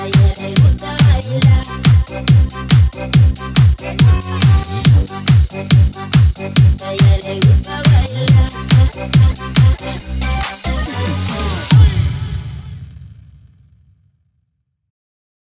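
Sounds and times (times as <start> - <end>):
car audio music: 0.0 - 12.1.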